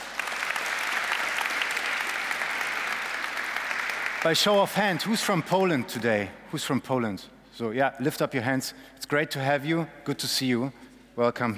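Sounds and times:
audience round of applause: 0:00.0 - 0:05.1
speech: 0:04.2 - 0:11.5.

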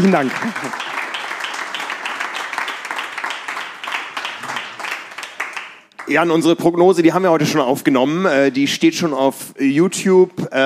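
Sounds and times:
speech: 0:00.0 - 0:00.9, 0:06.1 - 0:10.6
audience applause: 0:00.0 - 0:06.4.

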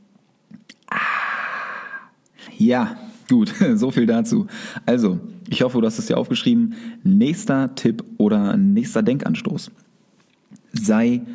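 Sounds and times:
person sipping a drink with mouth and swallowing noises: 0:00.5 - 0:02.4
loud breathy exhale of satisfaction: 0:00.9 - 0:02.5
speech: 0:02.6 - 0:09.8, 0:10.8 - 0:11.3.

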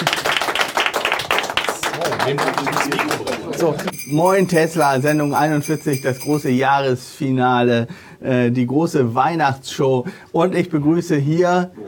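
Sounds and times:
audience applause: 0:00.0 - 0:03.9
speech: 0:02.0 - 0:11.8.

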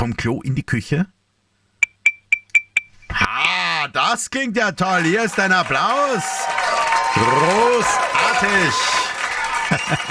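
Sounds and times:
speech: 0:00.0 - 0:01.2, 0:03.4 - 0:09.0, 0:09.7 - 0:10.0
spoon tapping a drinking glass: 0:01.8 - 0:03.6
laughter: 0:04.9 - 0:06.4, 0:07.2 - 0:10.0.

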